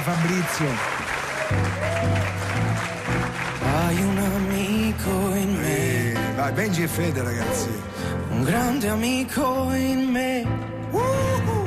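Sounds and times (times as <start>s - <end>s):
speech: 0.0s - 0.9s, 1.5s - 5.8s, 6.4s - 11.5s
audience applause greeting Fabrizio Frizzi: 0.0s - 5.4s.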